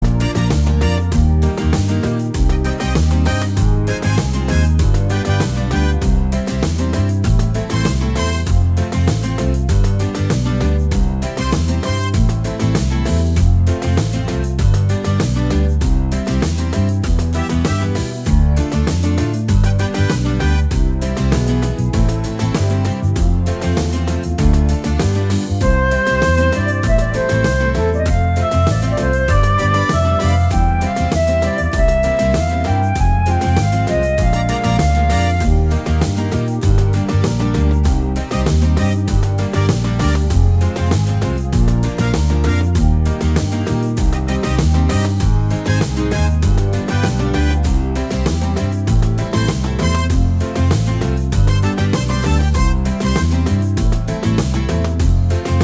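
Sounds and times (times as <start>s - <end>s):
cumbia music: 0.0s - 55.6s.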